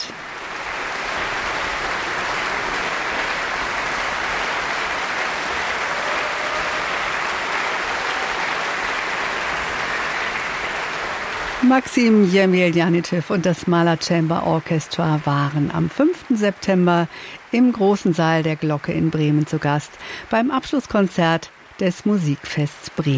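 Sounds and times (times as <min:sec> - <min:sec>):
concert audience cheering: 0:00.0 - 0:12.5
speech: 0:11.7 - 0:23.1.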